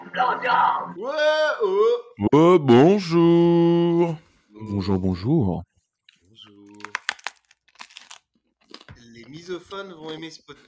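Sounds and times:
speech: 0.2 - 5.7, 9.5 - 10.6
person eating a sandwich: 6.0 - 9.0.

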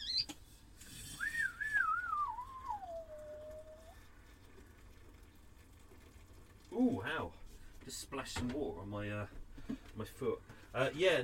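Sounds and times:
kettle whistling as tea water boils: 1.0 - 4.0
speech: 6.8 - 11.2.

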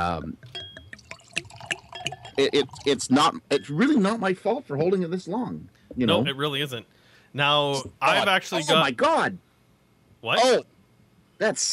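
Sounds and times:
speech: 0.0 - 0.6, 2.0 - 9.4, 10.2 - 10.7, 11.4 - 11.7
old wine poured from a bottle into a glass: 0.4 - 3.0.

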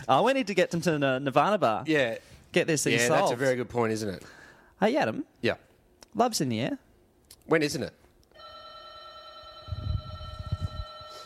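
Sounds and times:
speech: 0.1 - 6.8, 7.5 - 8.0
doorbell ringing: 8.4 - 11.2.

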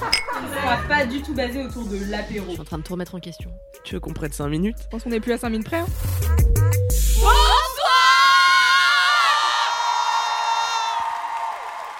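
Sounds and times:
speech: 0.7 - 6.4
crowd cheering at a live comedy show at the Apollo Théâtre: 7.2 - 11.9.

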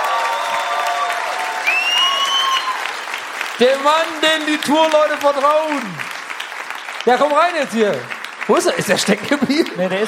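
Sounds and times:
audience applause: 0.0 - 10.0
audience whistles: 1.6 - 2.8
speech: 3.6 - 6.1, 7.0 - 10.0
laughter: 8.6 - 10.0.

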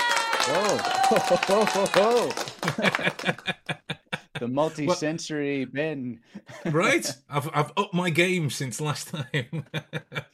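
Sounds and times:
applause sound effect: 0.0 - 3.7
crowd cheering sound effect: 0.0 - 3.9
laughter: 0.5 - 5.0, 6.4 - 7.2, 9.0 - 10.3
speech: 0.5 - 10.3.

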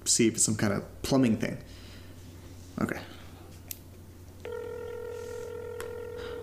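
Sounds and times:
low hum: 0.0 - 6.4
speech: 0.1 - 1.8, 2.8 - 3.1
phone dial tone: 4.4 - 6.4.

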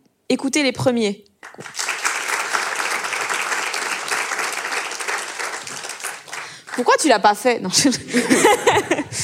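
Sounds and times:
speech: 0.3 - 1.9, 6.8 - 9.2
audience applause: 1.4 - 7.1
laughter: 7.8 - 9.2.

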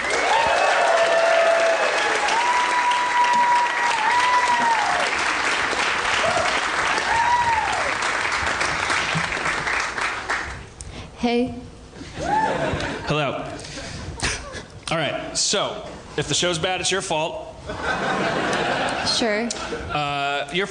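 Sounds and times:
audience whoops: 0.0 - 5.4, 6.1 - 8.2, 12.2 - 12.7
audience applause for a comedian at the 2016 New York City Comedy Festival: 0.0 - 10.7
speech: 11.2 - 11.6, 15.5 - 17.8, 19.2 - 20.6
laughter: 12.1 - 14.7, 17.6 - 19.9.

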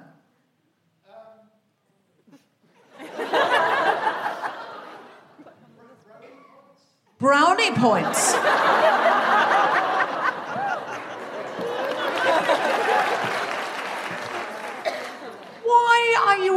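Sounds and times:
laughter: 2.7 - 6.0, 7.6 - 15.8
speech: 7.2 - 9.1
audience applause: 8.4 - 15.9.

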